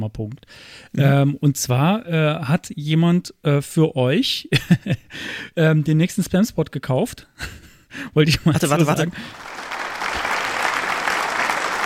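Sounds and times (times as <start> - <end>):
speech: 0.0 - 9.6
laughter: 8.2 - 11.6
applause sound effect: 8.6 - 11.8.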